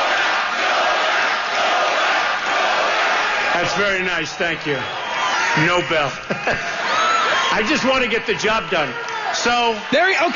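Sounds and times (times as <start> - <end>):
rally crowd chanting: 0.0 - 3.9
speech: 3.8 - 5.0, 5.6 - 6.9, 7.5 - 10.3
laughter: 5.4 - 8.9.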